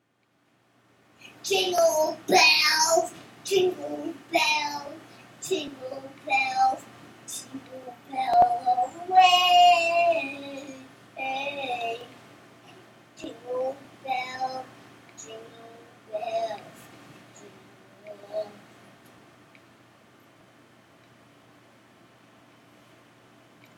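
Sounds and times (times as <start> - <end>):
Christmas song: 1.2 - 12.2, 13.2 - 18.6.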